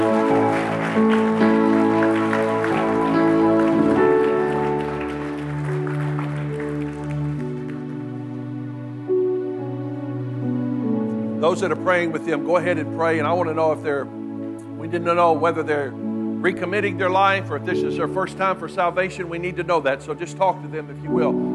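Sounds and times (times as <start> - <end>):
audience clapping: 0.0 - 8.6
sustained organ-like chords: 0.0 - 21.5
speech: 11.5 - 14.2, 14.9 - 21.5.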